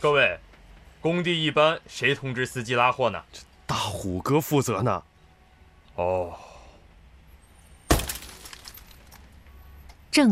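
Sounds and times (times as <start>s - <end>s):
speech: 0.0s - 0.4s, 1.0s - 5.1s, 6.0s - 6.5s, 10.1s - 10.3s
police car window glass being smashed: 7.9s - 9.1s
glass fragments tinkling: 7.9s - 9.3s.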